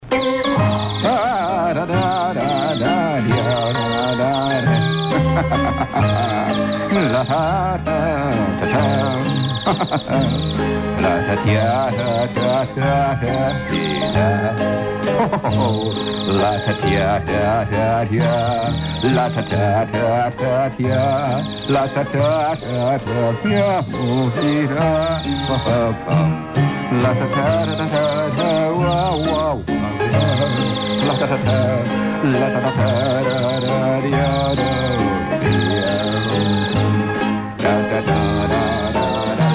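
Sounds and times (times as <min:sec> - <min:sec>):
piano: 0:00.0 - 0:39.5
laughter: 0:01.1 - 0:12.1, 0:14.0 - 0:17.2, 0:30.1 - 0:33.6.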